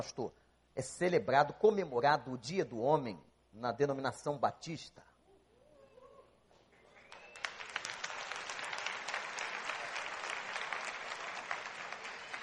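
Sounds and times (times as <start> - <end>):
speech: 0.0 - 5.1
weak audience applause: 6.8 - 12.4.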